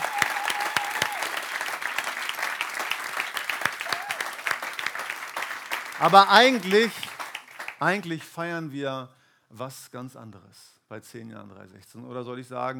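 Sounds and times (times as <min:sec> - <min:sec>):
big applause: 0:00.0 - 0:08.4
speech: 0:06.0 - 0:07.0, 0:07.8 - 0:12.7.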